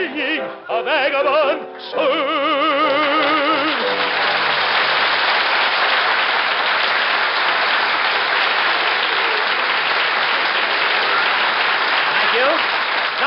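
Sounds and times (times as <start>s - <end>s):
speech: 0.1s - 2.6s
studio audience applause: 3.0s - 13.2s.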